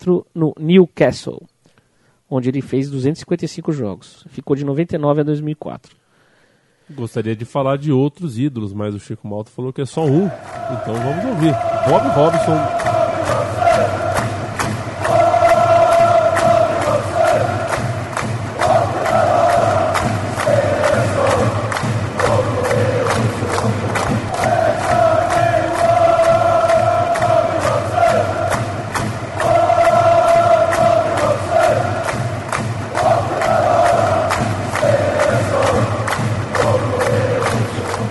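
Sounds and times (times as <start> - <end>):
speech: 0.0 - 1.5, 2.3 - 6.0, 6.9 - 14.0
large stadium crowd chanting in unison: 10.1 - 38.0.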